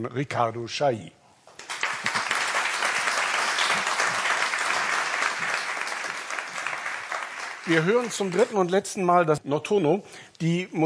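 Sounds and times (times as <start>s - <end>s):
speech: 0.0s - 1.2s, 7.7s - 10.8s
audience applause: 1.6s - 8.7s.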